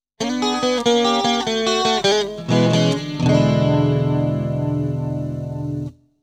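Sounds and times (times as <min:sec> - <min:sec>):
blues ending: 0:00.2 - 0:05.9.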